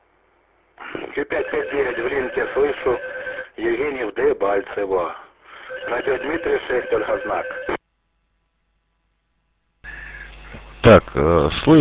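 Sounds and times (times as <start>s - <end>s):
speech: 0.9s - 5.2s, 5.8s - 7.7s, 10.8s - 11.7s
telephone beeping: 1.3s - 3.5s, 5.6s - 7.8s.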